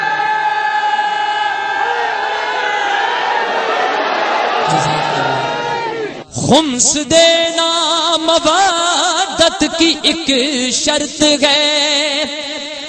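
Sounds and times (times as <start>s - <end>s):
crowd chanting a slogan in unison: 0.0s - 6.3s
speech: 6.5s - 12.7s.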